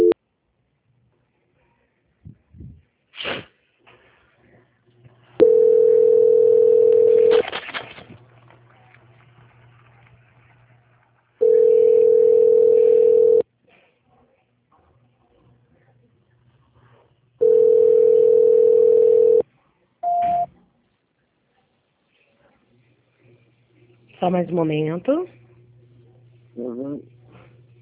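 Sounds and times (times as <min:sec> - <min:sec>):
telephone line tones during a call transfer: 0:05.4 - 0:07.4, 0:11.4 - 0:13.4, 0:17.4 - 0:19.4, 0:20.0 - 0:20.5
speech: 0:24.3 - 0:25.4.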